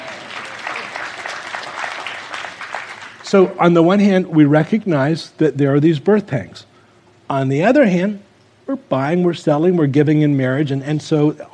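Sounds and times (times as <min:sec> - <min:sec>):
audience applause: 0:00.0 - 0:03.4
speech: 0:03.3 - 0:06.7, 0:07.3 - 0:11.5.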